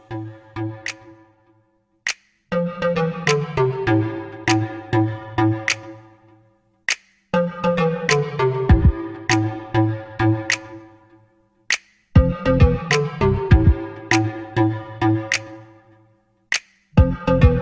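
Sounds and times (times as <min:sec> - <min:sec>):
remix music: 0:00.0 - 0:01.4, 0:02.5 - 0:06.1, 0:07.4 - 0:11.0, 0:12.2 - 0:15.8, 0:17.0 - 0:17.6.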